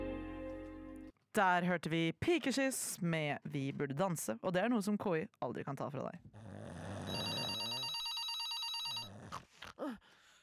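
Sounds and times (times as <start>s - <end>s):
speech: 1.3s - 6.4s, 9.8s - 10.1s
telephone ringing with a bright buzzy electronic trill: 7.1s - 9.1s.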